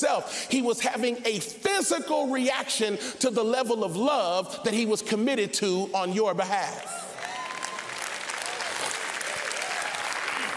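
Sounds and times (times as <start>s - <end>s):
speech: 0.0s - 7.0s
crowd clapping: 6.8s - 10.5s.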